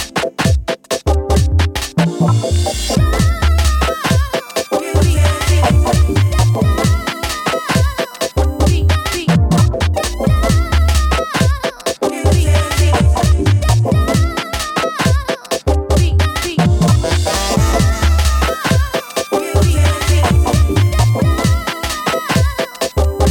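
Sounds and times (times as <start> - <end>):
drum beat with 70 percent shuffle: 0.0 - 2.1, 3.0 - 4.4, 5.0 - 23.2.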